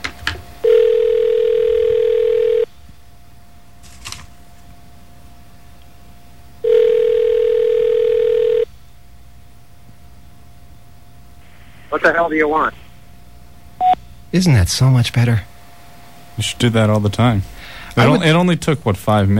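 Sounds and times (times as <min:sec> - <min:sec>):
telephone ringing: 0:00.6 - 0:02.7, 0:06.6 - 0:08.7
speech: 0:12.0 - 0:12.8, 0:14.3 - 0:15.5, 0:16.4 - 0:19.3.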